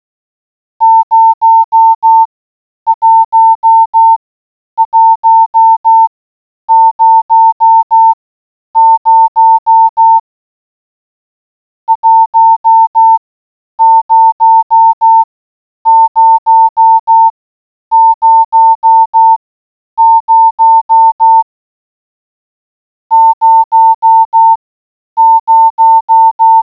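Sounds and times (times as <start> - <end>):
morse code beeps: 0.8 - 2.3, 2.9 - 4.2, 4.8 - 6.1, 6.7 - 8.2, 8.8 - 10.2, 11.9 - 13.2, 13.8 - 15.3, 15.9 - 17.3, 17.9 - 19.4, 20.0 - 21.5, 23.1 - 24.6, 25.2 - 26.7.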